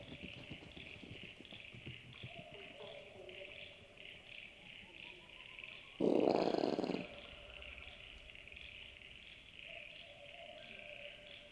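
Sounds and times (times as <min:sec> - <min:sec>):
brush-tailed possum giving a harsh rasping grunt: 0:06.0 - 0:07.3.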